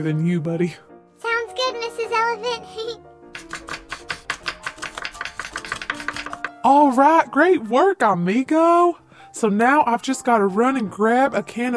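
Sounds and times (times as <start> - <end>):
speech: 0.0 - 0.9, 6.6 - 11.7
chopping carrots and potatoes on cutting board: 3.4 - 6.6.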